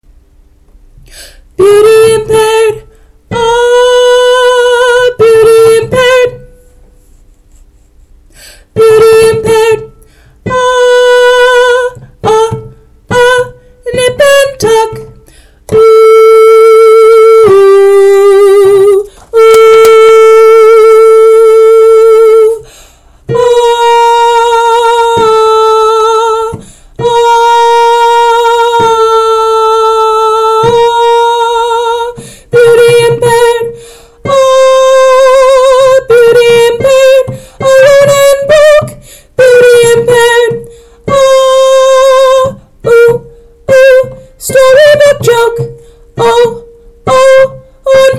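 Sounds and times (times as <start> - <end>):
soprano singing: 1.5 - 6.7, 8.7 - 48.1.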